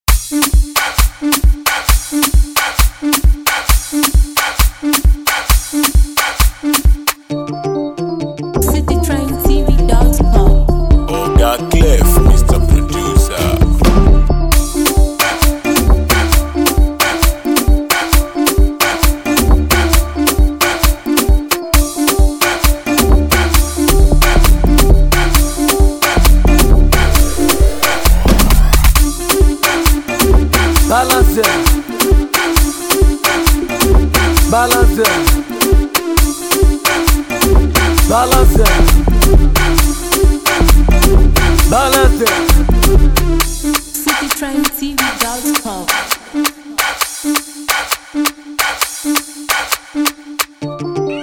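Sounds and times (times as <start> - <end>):
music beat: 0.1 - 51.0.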